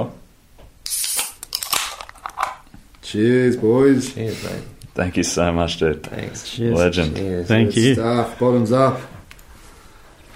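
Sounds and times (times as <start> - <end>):
fizzing hiss from an opened can: 0.8 - 1.4
beer cans being cracked open: 0.8 - 2.8
speech: 3.1 - 9.2.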